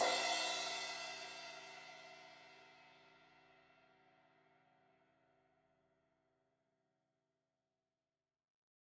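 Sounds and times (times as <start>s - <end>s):
16-inch crash cymbal hit on the edge: 0.0s - 1.7s.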